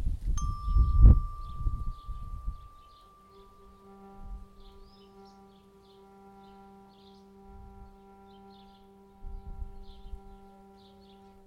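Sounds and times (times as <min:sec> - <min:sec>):
wind rumbling in gusts through garden trees: 0:00.0 - 0:05.4, 0:08.9 - 0:10.5
struck metal tone: 0:00.4 - 0:05.8
swallows twittering: 0:00.8 - 0:11.4.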